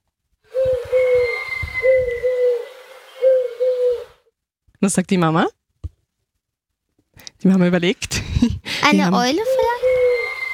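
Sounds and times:
pigeon cooing: 0.5 - 4.2, 9.4 - 10.5
speech: 4.8 - 5.6, 7.4 - 9.8.

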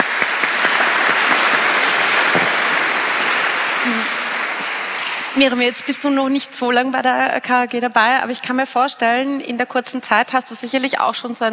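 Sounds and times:
applause: 0.0 - 6.1
speech: 5.4 - 11.5.

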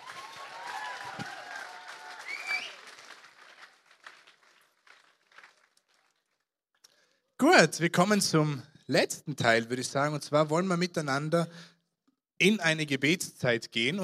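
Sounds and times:
audience applause: 0.0 - 6.4
speech: 7.4 - 11.7, 12.4 - 14.0.

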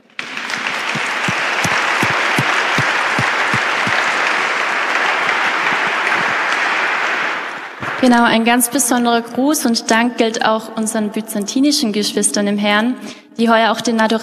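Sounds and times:
audience applause: 0.2 - 7.8
speech: 8.0 - 14.2.

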